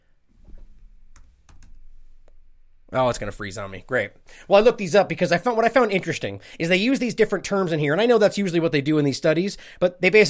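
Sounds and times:
typing on a computer keyboard: 1.2 - 1.8
speech: 2.9 - 10.2.

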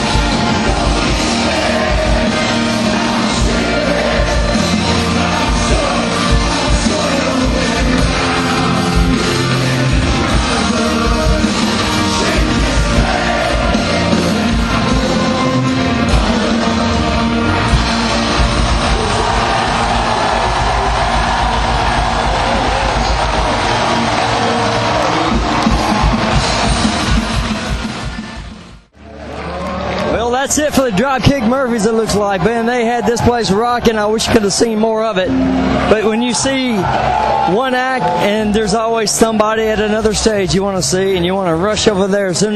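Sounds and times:
festival crowd singing along to music: 0.0 - 24.3
festival crowd cheering: 0.0 - 42.5
live music: 0.0 - 42.5
speech: 31.5 - 42.5.

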